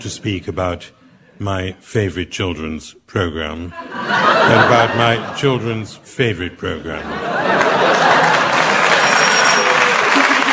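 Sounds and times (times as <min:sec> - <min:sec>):
speech: 0:00.0 - 0:08.3
laughter: 0:03.7 - 0:10.5
audience applause: 0:07.3 - 0:10.5.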